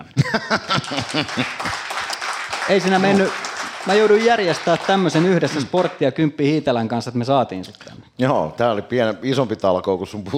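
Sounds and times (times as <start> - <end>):
laughter: 0.1 - 5.8
speech: 0.4 - 1.9, 2.7 - 10.3
live audience applause: 0.7 - 6.0.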